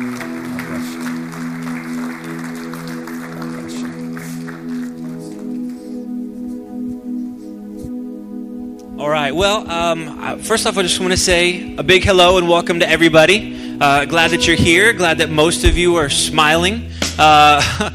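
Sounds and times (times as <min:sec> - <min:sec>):
church congregation applauding during a worship service: 0:00.0 - 0:06.4
sustained musical chords: 0:00.0 - 0:17.1
speech: 0:09.3 - 0:17.9.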